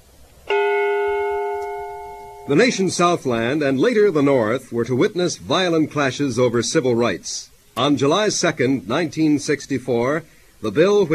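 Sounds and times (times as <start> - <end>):
memorial bell struck in memory of the fallen: 0.5 - 3.0
speech: 2.5 - 11.1.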